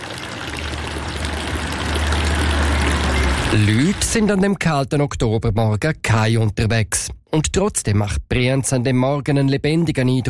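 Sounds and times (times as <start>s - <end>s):
village fountain splashing: 0.0s - 4.3s
speech: 3.5s - 10.2s.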